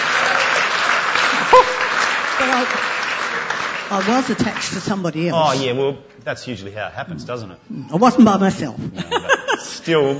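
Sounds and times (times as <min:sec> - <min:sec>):
audience applause: 0:00.0 - 0:05.0
speech: 0:02.4 - 0:02.9, 0:03.9 - 0:10.1
laughter: 0:08.9 - 0:10.1.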